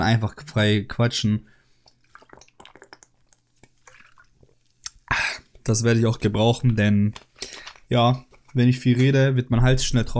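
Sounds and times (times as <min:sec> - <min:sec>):
speech: 0:00.0 - 0:01.6, 0:05.6 - 0:10.1
person sipping a drink: 0:01.8 - 0:05.6, 0:07.3 - 0:07.9.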